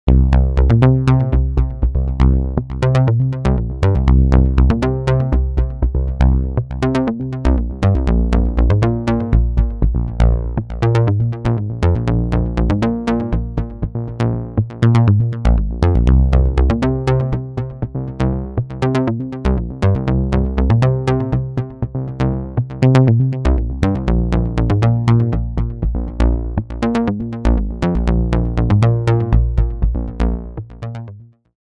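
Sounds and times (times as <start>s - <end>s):
odd bass sound: 0.1s - 31.4s.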